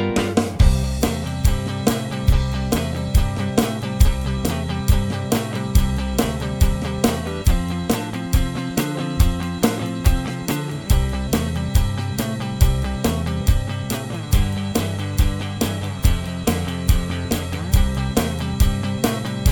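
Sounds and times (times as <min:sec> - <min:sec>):
solo backing track: 0:00.2 - 0:19.5.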